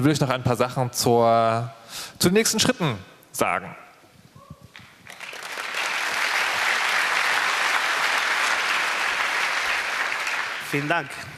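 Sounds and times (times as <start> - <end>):
speech: 0.0 - 3.8, 10.7 - 11.3
audience applause: 5.0 - 11.3.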